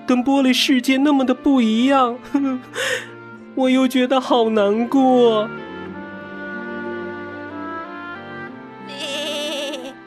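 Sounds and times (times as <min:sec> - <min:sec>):
speech: 0:00.1 - 0:05.6
lamb bleating: 0:08.9 - 0:10.0.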